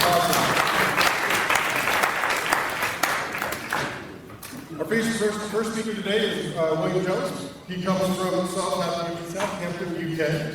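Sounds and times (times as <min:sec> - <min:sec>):
audience applause: 0:00.0 - 0:04.0
speech: 0:04.9 - 0:10.5.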